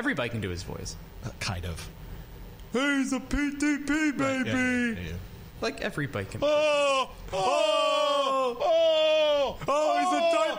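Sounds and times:
speech: 0:00.0 - 0:02.0, 0:02.7 - 0:10.3
two men moaning playfully: 0:06.4 - 0:10.5.

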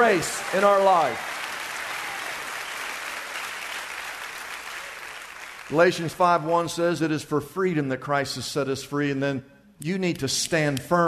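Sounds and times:
speech: 0:00.0 - 0:01.3, 0:05.7 - 0:11.0
audience clapping: 0:00.0 - 0:06.5.

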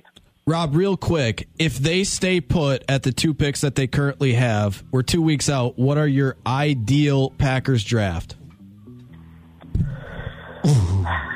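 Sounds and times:
speech: 0:00.5 - 0:08.4
big sharp intake of breath: 0:09.8 - 0:11.0.

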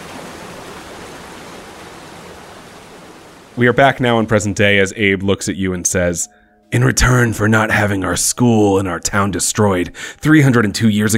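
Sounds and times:
rain beginning to fall: 0:00.0 - 0:05.0
speech: 0:03.6 - 0:11.1.

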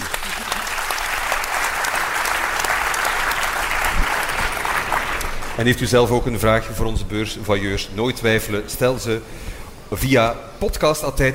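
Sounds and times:
audience applause: 0:00.0 - 0:05.8
speech: 0:05.6 - 0:11.3.

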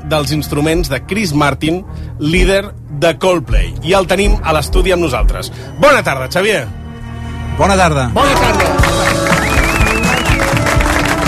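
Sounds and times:
speech: 0:00.1 - 0:06.8, 0:07.6 - 0:09.3
studio audience applauding: 0:08.2 - 0:11.2.

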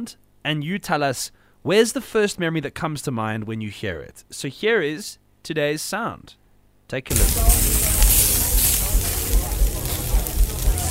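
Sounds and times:
speech: 0:00.0 - 0:07.8
indistinct voices: 0:07.1 - 0:10.8
low thumps: 0:07.1 - 0:10.8
meat sizzling on a fire: 0:07.1 - 0:10.8.

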